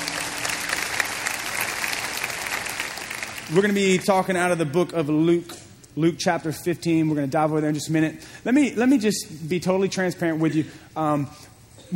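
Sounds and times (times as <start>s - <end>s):
church congregation clapping during a morning service: 0.0s - 4.4s
speech: 3.5s - 11.9s.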